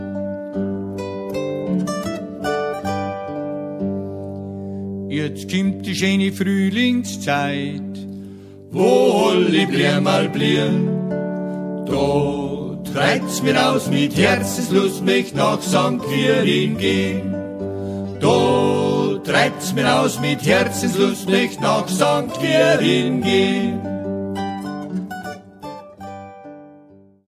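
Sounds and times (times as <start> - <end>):
lied art song: 0.2 - 26.3.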